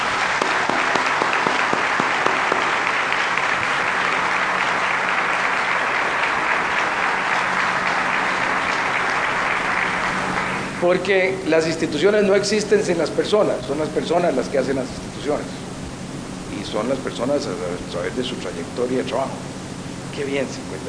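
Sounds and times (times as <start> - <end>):
audience applause: 0.0 - 11.1
speech: 10.9 - 15.6, 16.6 - 19.5, 20.2 - 20.8.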